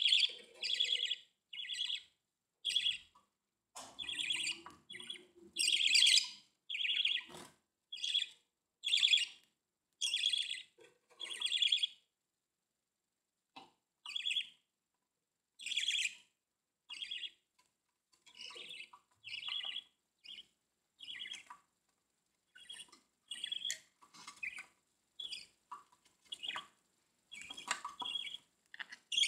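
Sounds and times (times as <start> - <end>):
budgerigar chirps: 0.0 - 3.3, 3.9 - 9.4, 10.0 - 12.0, 14.0 - 14.6, 15.6 - 16.3, 16.9 - 17.4, 18.2 - 21.6, 22.5 - 29.2.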